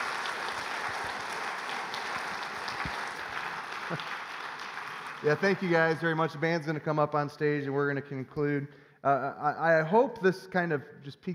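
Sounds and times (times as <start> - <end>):
crowd applause for the band: 0.0 - 6.4
speech: 3.9 - 4.2, 5.2 - 11.3.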